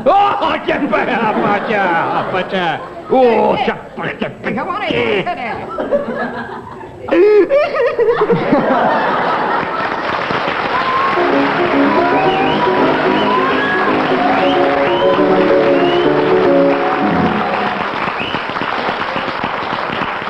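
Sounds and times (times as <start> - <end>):
laughter: 0.6 - 10.4
audience applause: 8.7 - 20.2.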